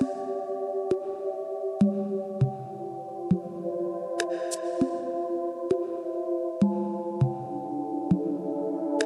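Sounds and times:
ambient meditation melody: 0:00.0 - 0:09.0.

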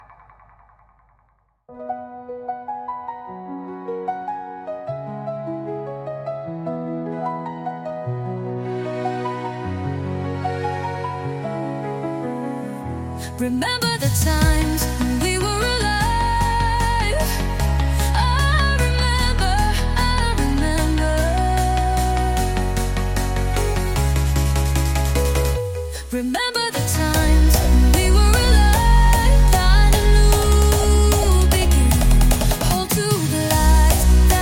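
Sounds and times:
trance music: 0:13.6 - 0:34.3.

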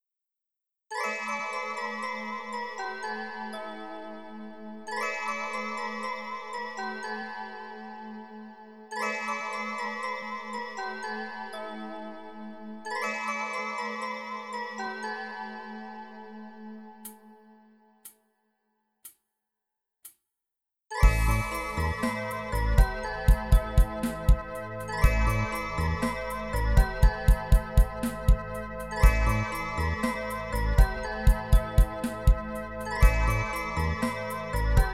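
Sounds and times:
fitness music for stretching at 432 Hz: 0:21.0 - 0:34.9.

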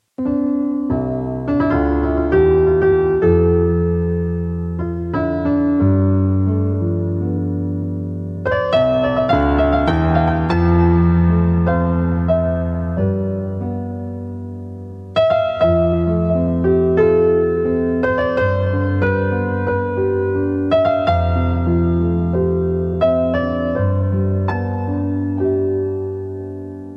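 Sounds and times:
piano music tuned to 432 Hz: 0:00.0 - 0:26.9.

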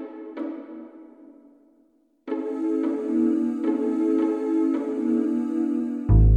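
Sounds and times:
vocals at 432 Hz: 0:02.4 - 0:06.3.

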